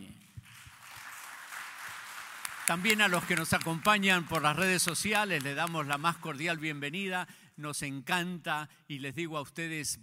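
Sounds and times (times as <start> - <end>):
audience applause: 0.4 - 6.8
speech: 2.7 - 10.0.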